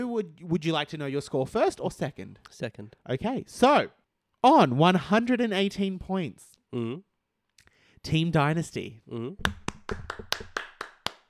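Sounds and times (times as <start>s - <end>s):
speech: 0.0s - 7.1s, 8.0s - 10.4s
single person clapping hands: 9.4s - 11.2s.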